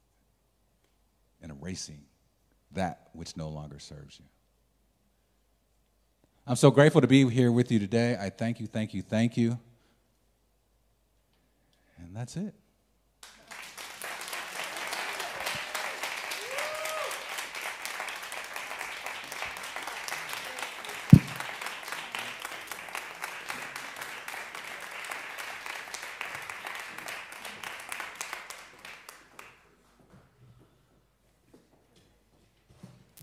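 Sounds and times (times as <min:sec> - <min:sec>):
speech: 0:01.6 - 0:02.1, 0:02.7 - 0:04.4, 0:06.4 - 0:09.7, 0:12.0 - 0:12.6
crowd applauding: 0:13.2 - 0:29.6.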